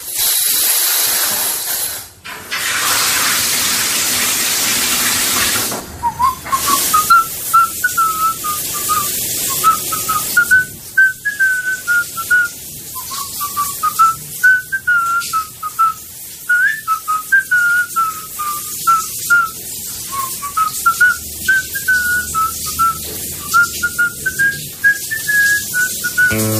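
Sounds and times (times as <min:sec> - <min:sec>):
shower water running: 0:00.0 - 0:26.5
person in a shower whistling a well-known march: 0:06.0 - 0:26.5.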